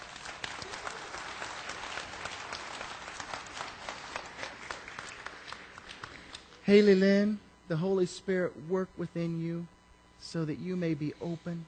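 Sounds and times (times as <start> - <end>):
crowd applause: 0.0 - 6.6
speech: 6.7 - 11.6.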